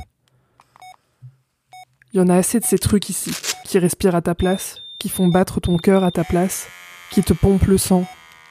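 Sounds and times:
hospital monitor beeping: 1.7 - 8.2
speech: 2.1 - 8.2.

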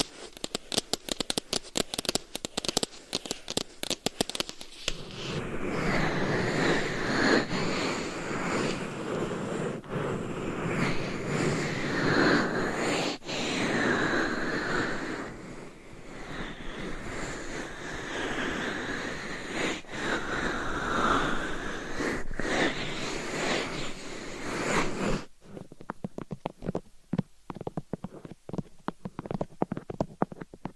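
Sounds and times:
nail tapping on different items: 0.0 - 5.0
nail scratching on different items: 0.0 - 30.7.

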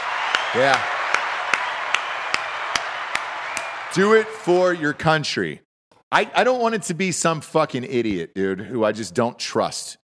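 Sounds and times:
applause sound effect: 0.0 - 5.0
speech: 0.5 - 1.0, 3.9 - 10.0.

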